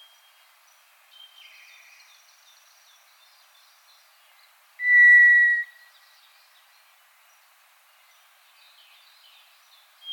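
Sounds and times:
White's thrush whistling: 4.8 - 5.8.

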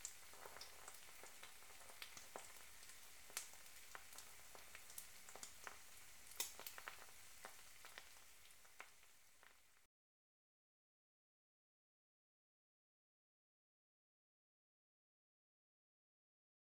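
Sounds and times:
fried eggs frying: 0.0 - 9.9.

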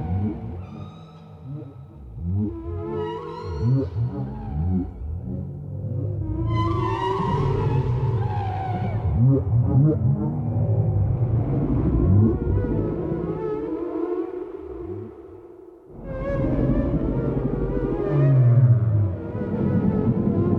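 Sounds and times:
whale sounds: 0.0 - 20.4.

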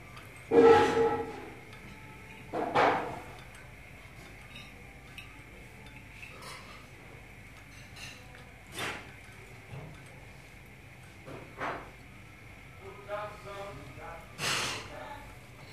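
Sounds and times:
cafe background noise: 0.0 - 15.7.

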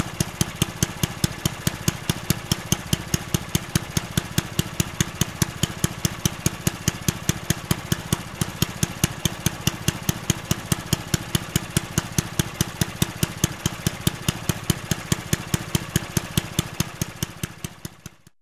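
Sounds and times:
lawn mower: 0.0 - 18.3.

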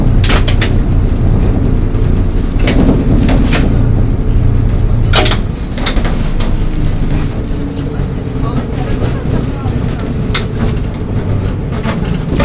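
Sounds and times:
trolleybus: 0.0 - 12.4
people's voices: 6.8 - 12.4.

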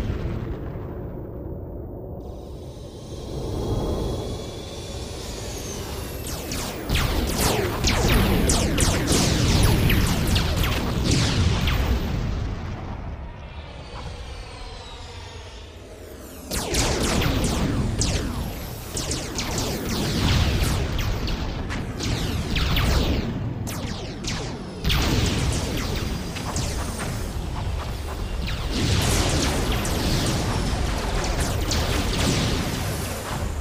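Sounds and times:
space battle sounds: 0.0 - 33.5.

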